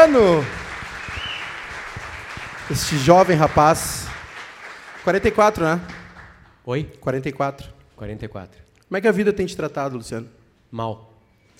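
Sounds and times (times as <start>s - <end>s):
speech: 0.0s - 0.6s, 2.7s - 4.1s, 5.0s - 6.0s, 6.6s - 11.1s
applause: 0.0s - 6.6s.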